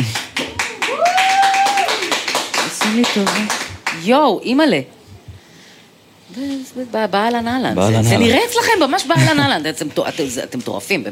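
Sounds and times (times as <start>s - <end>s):
audience clapping for a commander at a live comedy show: 0.0s - 4.1s
speech: 3.0s - 5.0s, 6.3s - 11.1s.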